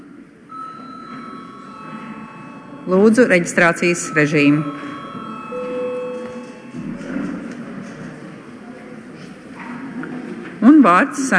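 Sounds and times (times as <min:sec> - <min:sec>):
parliament session bell ringing: 0:00.5 - 0:07.9
speech: 0:02.9 - 0:04.9, 0:10.8 - 0:11.3.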